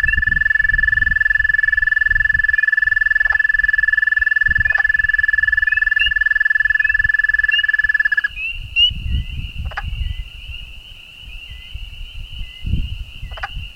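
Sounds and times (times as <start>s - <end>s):
dwarf toad calling: 0.0s - 9.0s
peepers calling: 0.0s - 13.7s.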